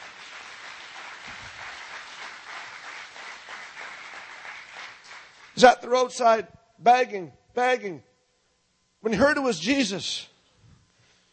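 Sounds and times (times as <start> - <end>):
audience applauding: 0.0 - 5.7
speech: 5.6 - 8.1, 9.0 - 10.3.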